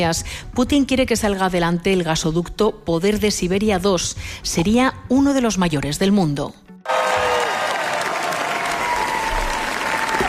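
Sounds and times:
speech: 0:00.0 - 0:06.6
festival audience applause: 0:06.9 - 0:10.2.

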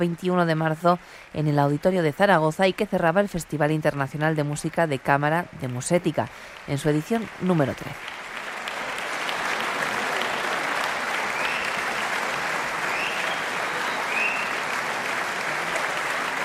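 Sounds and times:
speech: 0:00.0 - 0:08.2
audience applause after chamber concert: 0:04.8 - 0:16.4.

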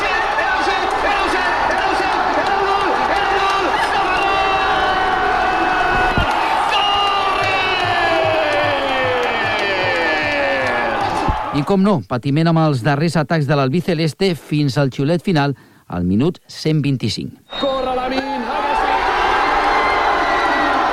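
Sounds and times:
huge stadium crowd cheering a goal: 0:00.0 - 0:11.8, 0:17.5 - 0:20.9
speech: 0:11.6 - 0:18.3.

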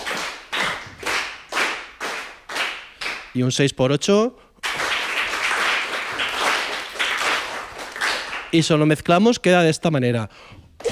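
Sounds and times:
rhythmic palmas hand clapping: 0:00.0 - 0:03.4, 0:04.6 - 0:08.7
speech: 0:03.4 - 0:04.4, 0:08.5 - 0:10.9.

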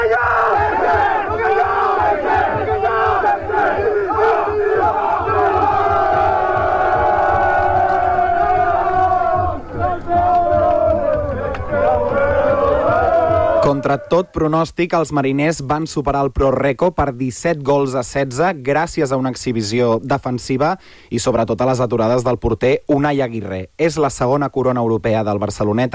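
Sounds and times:
team chanting war cry: 0:00.0 - 0:14.1
speech: 0:13.9 - 0:25.9.

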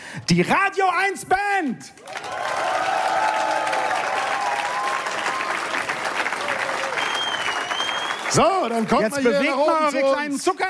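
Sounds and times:
speech: 0:00.2 - 0:02.5, 0:08.3 - 0:10.6
audience applause for band: 0:02.0 - 0:09.9.

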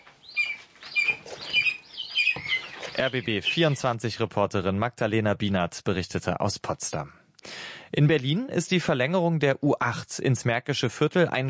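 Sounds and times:
falcon chicks calling: 0:00.0 - 0:03.9
speech: 0:03.0 - 0:07.2, 0:07.9 - 0:11.4.

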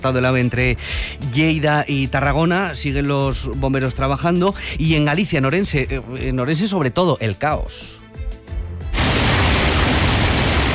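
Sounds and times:
speech: 0:00.0 - 0:08.0
heavy rain: 0:09.0 - 0:10.7
recorded storm noise: 0:09.0 - 0:10.7.

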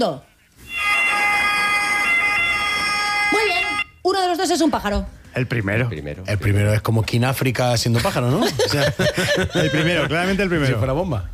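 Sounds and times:
speech: 0:00.0 - 0:00.3, 0:04.1 - 0:11.3
ambulance siren: 0:00.6 - 0:04.0
laughter: 0:07.9 - 0:10.6.

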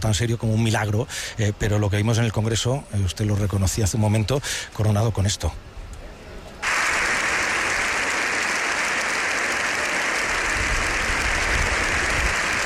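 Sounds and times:
speech: 0:00.0 - 0:05.8
sustained applause in parliament: 0:06.6 - 0:12.6.

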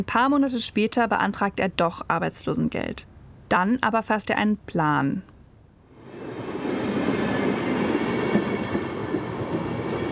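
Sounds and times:
speech: 0:00.0 - 0:05.3
train riding on rails: 0:05.9 - 0:10.1.

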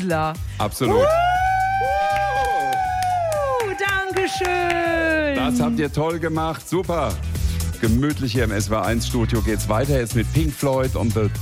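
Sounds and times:
speech: 0:00.0 - 0:01.9, 0:04.2 - 0:11.4
group cheering: 0:00.9 - 0:05.9.

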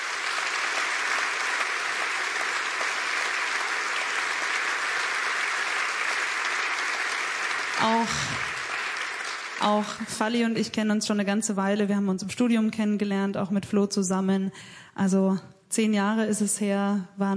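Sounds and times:
audience applause: 0:00.0 - 0:10.2
speech: 0:07.8 - 0:08.5, 0:09.6 - 0:17.3.

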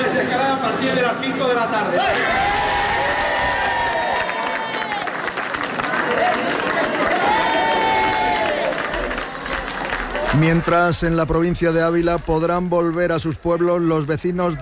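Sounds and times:
speech: 0:00.8 - 0:02.7, 0:10.4 - 0:14.6
residents applauding loudly: 0:02.1 - 0:14.6.

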